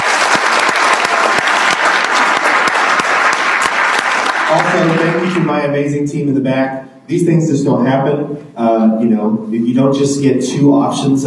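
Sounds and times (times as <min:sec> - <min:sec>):
round of applause: 0:00.0 - 0:05.5
speech: 0:04.5 - 0:11.2.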